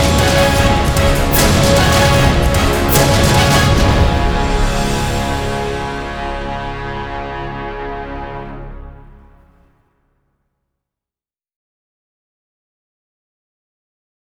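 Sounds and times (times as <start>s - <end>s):
trailer music without choir: 0.0s - 9.7s.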